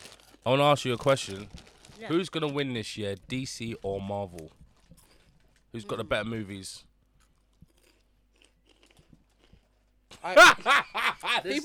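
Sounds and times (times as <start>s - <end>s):
munching on crisps: 0.0s - 2.6s, 3.3s - 6.0s, 7.1s - 10.5s
speech: 0.4s - 4.6s, 5.7s - 6.9s, 10.2s - 11.6s.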